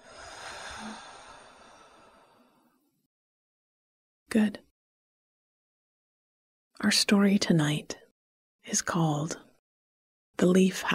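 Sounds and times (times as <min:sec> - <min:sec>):
slow breath in and out during a guided relaxation exercise: 0:00.0 - 0:03.0
speech: 0:04.3 - 0:04.6, 0:06.8 - 0:08.0, 0:08.7 - 0:09.4, 0:10.4 - 0:10.9.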